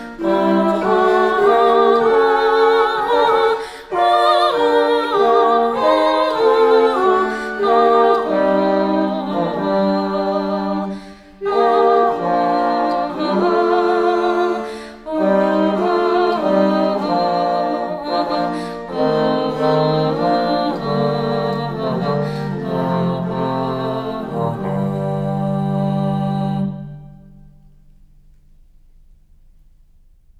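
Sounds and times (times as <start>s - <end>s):
low voices singing a sarabande in faux bourdon: 0.0s - 27.6s.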